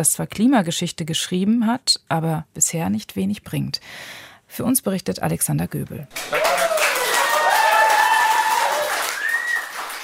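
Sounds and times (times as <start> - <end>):
speech: 0.0 - 6.4
crowd cheering in the district court in The Hague: 6.1 - 10.0.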